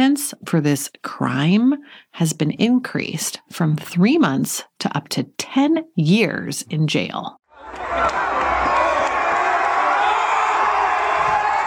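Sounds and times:
speech: 0:00.0 - 0:08.2
Black Lives Matter protest crowd cheering in Bristol, England: 0:07.5 - 0:11.6.

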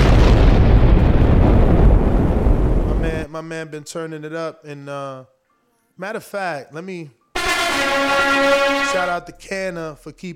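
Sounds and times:
bomb explosion sound effect: 0:00.0 - 0:03.3
speech: 0:03.4 - 0:05.4, 0:06.0 - 0:10.3.

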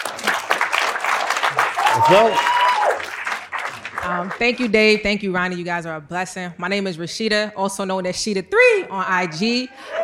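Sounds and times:
audience applause: 0:00.0 - 0:04.4
speech: 0:02.0 - 0:02.5, 0:04.0 - 0:10.0.

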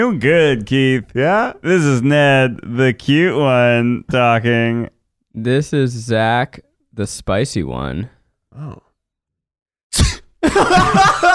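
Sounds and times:
speech: 0:00.0 - 0:08.9, 0:09.9 - 0:11.3
sneeze: 0:09.9 - 0:10.4
laughter: 0:10.4 - 0:11.3.

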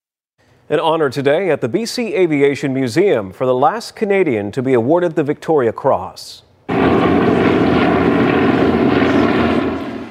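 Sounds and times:
speech: 0:00.7 - 0:07.4
six aircraft flying overhead in formation during a memorial flypast: 0:06.7 - 0:10.0.

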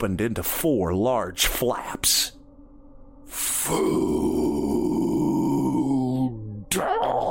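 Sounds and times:
speech: 0:00.0 - 0:02.4, 0:03.3 - 0:04.7, 0:06.7 - 0:06.9
creature's monstrous growl with a deep raspy rumble: 0:03.4 - 0:07.3.

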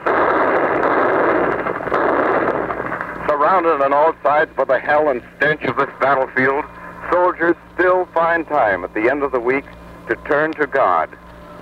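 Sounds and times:
anti-aircraft guns firing at enemy ground positions: 0:00.0 - 0:08.4
speech: 0:03.6 - 0:11.6.

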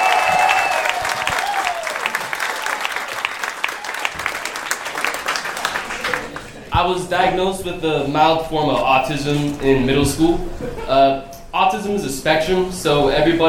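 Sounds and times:
audience applause and cheering: 0:00.0 - 0:06.7
speech: 0:06.8 - 0:13.4.

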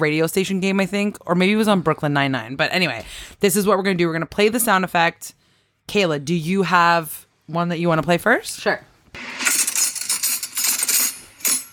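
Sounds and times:
speech: 0:00.0 - 0:09.4
hand grabbing cutlery: 0:09.2 - 0:11.7.

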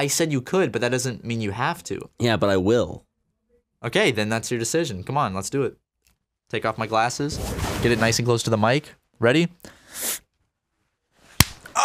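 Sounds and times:
speech: 0:00.0 - 0:03.1, 0:03.8 - 0:05.8, 0:06.5 - 0:10.2
open-hand slap on the face: 0:11.4 - 0:11.7.

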